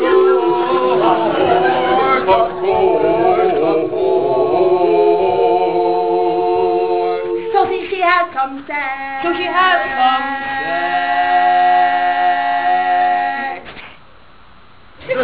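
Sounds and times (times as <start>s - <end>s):
people singing a cappella in San Francisco: 0.0s - 13.7s.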